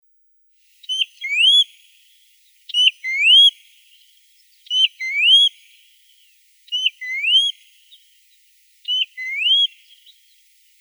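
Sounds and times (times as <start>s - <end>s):
American golden plover whistling: 0.8s - 1.7s, 2.8s - 3.5s, 4.7s - 5.6s, 6.7s - 7.6s, 8.9s - 10.4s.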